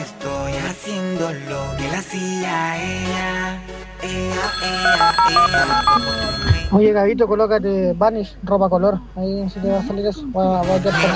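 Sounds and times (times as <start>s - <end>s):
music: 0.0s - 6.8s
speech: 0.8s - 11.1s
unanswered phone ringtone of alternating high beeps: 4.4s - 6.8s
laughter: 10.6s - 11.1s.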